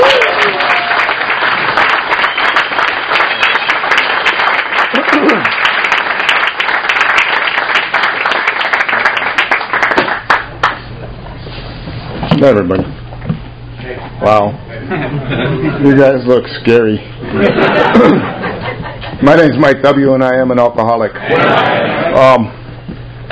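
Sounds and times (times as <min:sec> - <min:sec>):
audience applause welcoming a speaker at a recovery group meeting: 0:00.0 - 0:10.8
speech: 0:12.4 - 0:13.0, 0:14.2 - 0:18.4, 0:19.2 - 0:22.6
laughter: 0:14.7 - 0:16.2, 0:17.2 - 0:19.2, 0:21.2 - 0:22.4.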